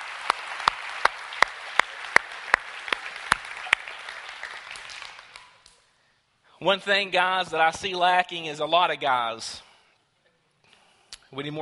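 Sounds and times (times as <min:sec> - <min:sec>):
audience applause: 0:00.0 - 0:05.6
speech: 0:06.6 - 0:09.7, 0:11.3 - 0:11.5.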